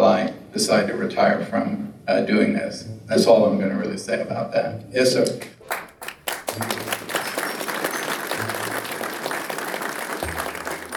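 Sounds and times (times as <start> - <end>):
speech: 0.6 - 5.8
audience clapping: 5.4 - 10.9.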